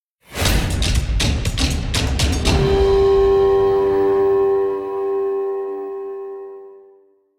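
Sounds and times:
string instrument: 0.4 - 7.0.

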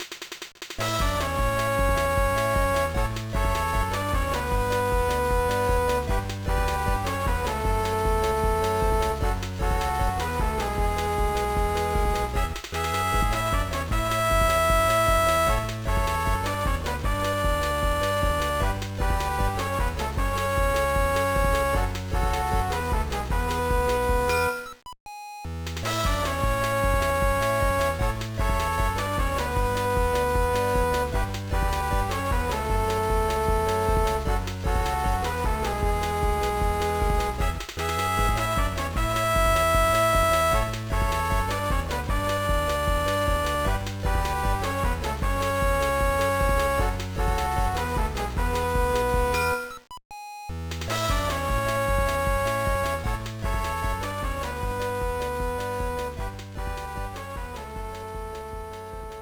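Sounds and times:
background music: 0.8 - 24.8, 25.5 - 49.9, 50.6 - 59.2.

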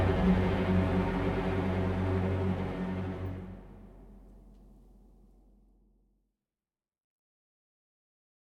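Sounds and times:
boss fight stage action music: 0.0 - 4.2.

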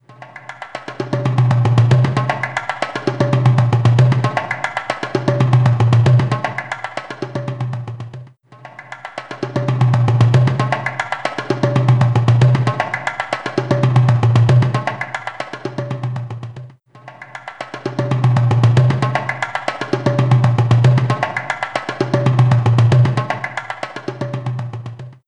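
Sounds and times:
drumming: 0.1 - 25.2.

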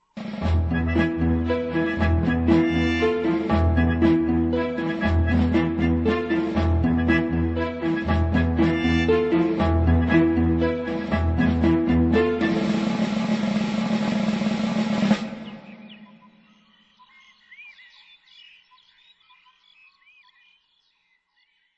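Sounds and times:
banjo duel: 0.4 - 15.6.

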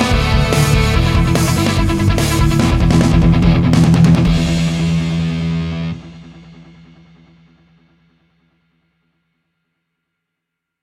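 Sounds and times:
hard rock music: 0.0 - 7.9.

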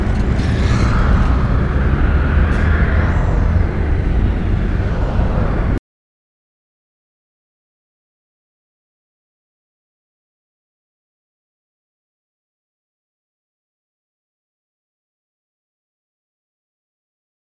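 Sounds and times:
US West industrial background noise: 0.0 - 5.8.

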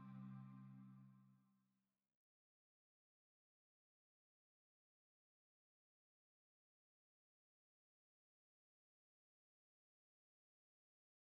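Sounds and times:
drone: 0.0 - 1.0.

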